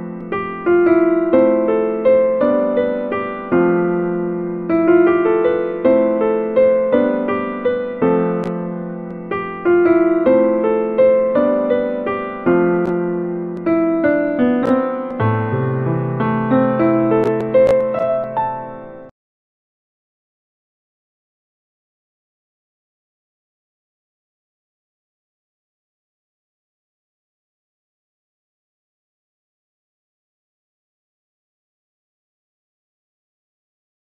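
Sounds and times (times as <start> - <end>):
piano: 0.0 - 19.2.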